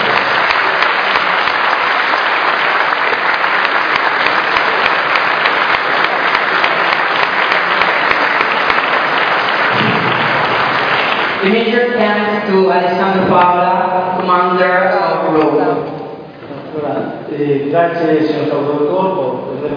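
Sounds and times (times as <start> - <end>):
applause: 0.0 - 12.5
speech: 11.5 - 15.9, 16.8 - 19.7.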